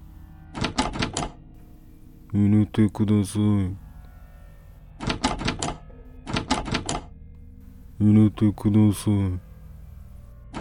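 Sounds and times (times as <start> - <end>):
front door knob rattling: 0.6 - 1.3, 5.0 - 7.0
speech: 2.3 - 3.8, 8.0 - 9.5.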